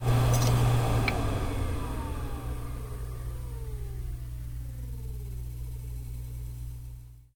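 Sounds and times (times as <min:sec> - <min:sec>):
anesthetic air shutting down: 0:00.0 - 0:05.5.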